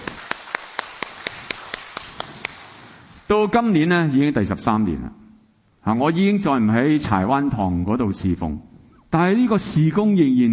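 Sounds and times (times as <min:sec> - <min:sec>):
audience applause: 0:00.0 - 0:03.0
speech: 0:03.3 - 0:05.2, 0:05.8 - 0:10.5.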